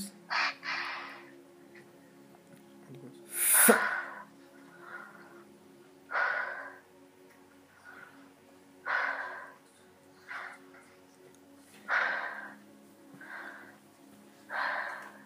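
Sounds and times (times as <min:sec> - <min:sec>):
deep breathing during a prayer for healing: 0:03.3 - 0:07.1, 0:07.7 - 0:11.1, 0:11.8 - 0:15.2.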